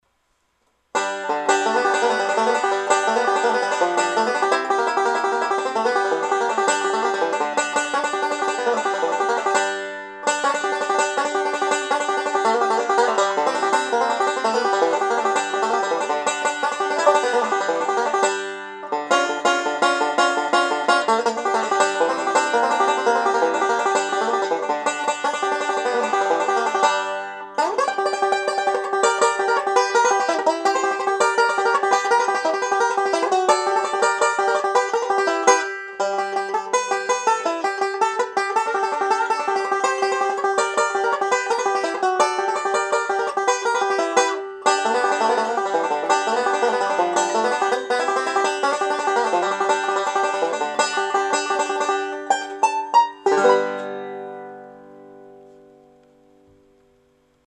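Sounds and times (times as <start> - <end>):
banjo: 0.9 - 55.8.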